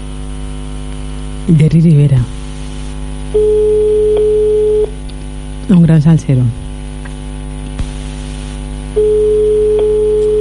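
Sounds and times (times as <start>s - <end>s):
low telephone line hum: 0.0s - 10.3s
speech: 1.5s - 2.4s, 5.7s - 6.6s
telephone ringback tone while calling: 3.4s - 4.9s, 9.0s - 10.3s.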